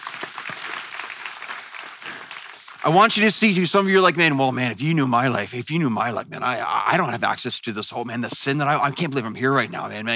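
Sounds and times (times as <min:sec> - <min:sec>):
audience clapping: 0:00.0 - 0:03.6
speech: 0:02.8 - 0:10.1.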